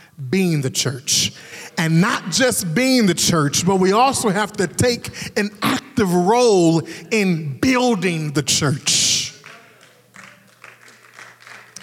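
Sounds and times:
speech: 0.2s - 9.3s
sparse clapping from a few people: 9.4s - 11.8s.

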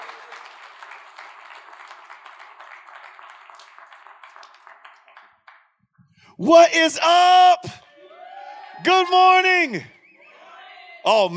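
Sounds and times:
church service audience applauding to welcome a pastor: 0.0s - 5.6s
speech: 6.4s - 7.8s, 8.8s - 9.9s, 11.1s - 11.3s.

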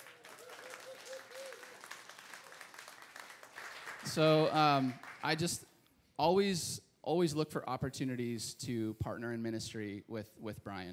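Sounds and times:
audience applause welcoming a preacher: 0.0s - 5.4s
speech: 4.1s - 10.9s.

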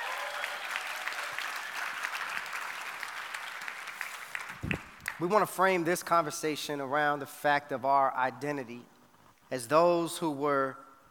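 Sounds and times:
audience applause at the 2018 New Year's Conference: 0.0s - 5.2s
speech: 5.2s - 8.9s, 9.5s - 10.8s.

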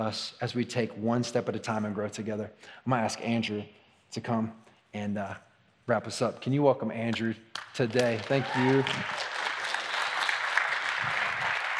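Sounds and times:
speech: 0.0s - 9.3s
audience clapping: 7.5s - 11.7s.

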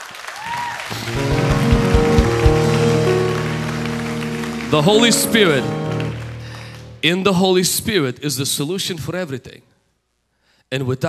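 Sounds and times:
audience clapping: 0.0s - 7.0s
sustained musical tones: 0.9s - 7.9s
speech: 1.1s - 1.4s, 4.7s - 5.8s, 7.0s - 9.7s, 10.7s - 11.0s.

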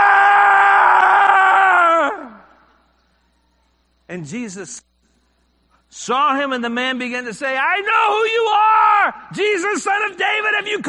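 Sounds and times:
man screaming as an imitation of a man possessed by an evil spirit: 0.0s - 2.5s, 7.9s - 9.3s
speech: 4.2s - 4.9s, 5.9s - 10.8s.

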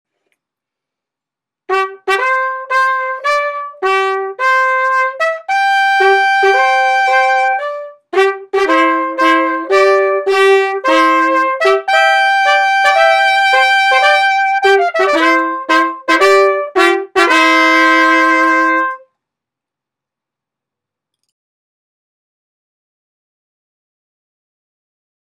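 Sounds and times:
musical flourish: 1.7s - 19.0s.

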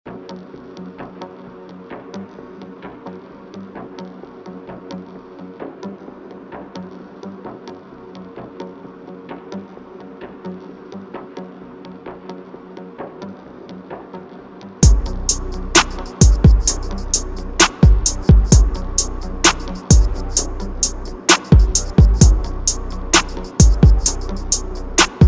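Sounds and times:
music beat: 14.8s - 25.2s.

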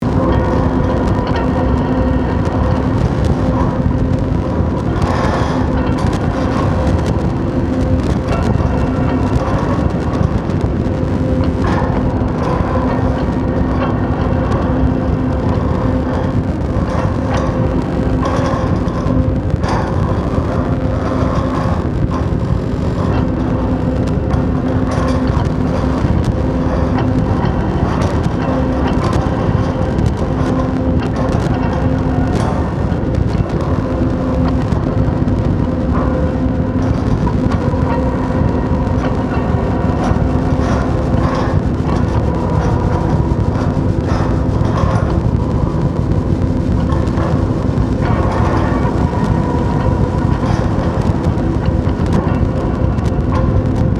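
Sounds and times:
ambience: 0.0s - 53.9s.

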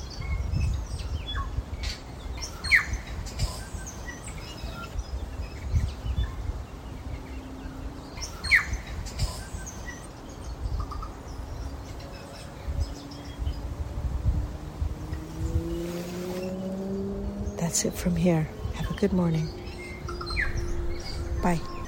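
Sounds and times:
tui birds singing at dawn: 0.0s - 21.8s
droning engine-like hum: 2.5s - 21.8s
steady low rumble: 12.6s - 21.8s
speech: 17.8s - 19.6s, 21.4s - 21.7s.

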